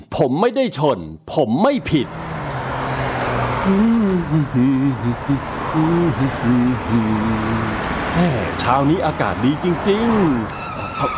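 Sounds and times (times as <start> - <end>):
speech: 0.2 - 2.2, 3.6 - 11.1
car engine running a red light in a radio-drama scene: 1.8 - 11.1
agitated voices in a radio-drama scene: 3.6 - 11.1.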